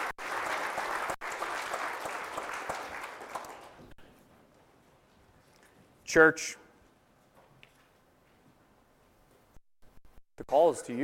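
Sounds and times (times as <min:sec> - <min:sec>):
audience applause: 0:00.0 - 0:03.8
speech: 0:06.1 - 0:06.6, 0:10.7 - 0:11.0.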